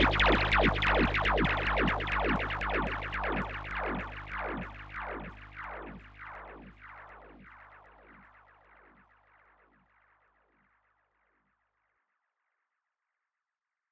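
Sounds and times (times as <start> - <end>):
Moog Mavis synthesizer dripping wax sound with stereo tape echo: 0.0 - 7.2.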